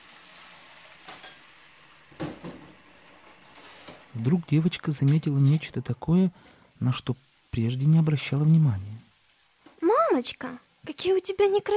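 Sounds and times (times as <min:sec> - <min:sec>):
washing dishes in a kitchen: 0:00.0 - 0:08.8
speech: 0:04.2 - 0:09.0, 0:10.2 - 0:11.7.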